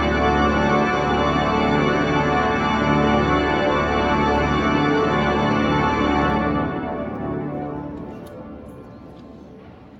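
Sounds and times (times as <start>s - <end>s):
organ playing: 0.0s - 7.8s.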